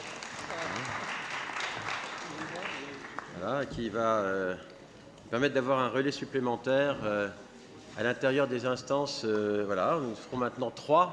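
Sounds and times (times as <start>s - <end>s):
audience applause: 0.0s - 3.6s
speech: 3.4s - 4.7s, 5.3s - 7.4s, 8.0s - 11.1s.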